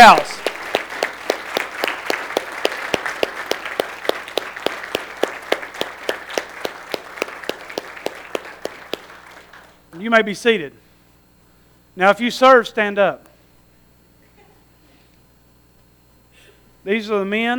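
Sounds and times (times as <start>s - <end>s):
speech: 0.0s - 0.4s, 10.1s - 10.8s, 12.0s - 13.3s, 16.8s - 17.5s
audience applause: 0.0s - 9.8s.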